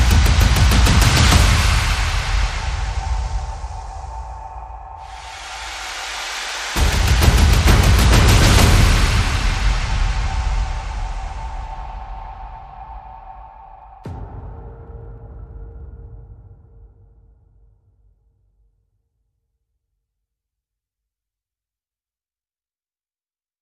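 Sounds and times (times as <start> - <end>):
percussion: 0.0 - 18.3.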